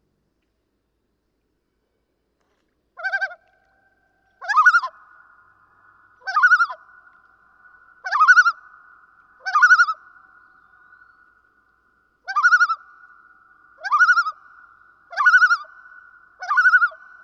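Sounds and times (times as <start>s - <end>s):
common loon calling: 3.0s - 3.7s, 4.3s - 11.6s, 12.2s - 17.2s.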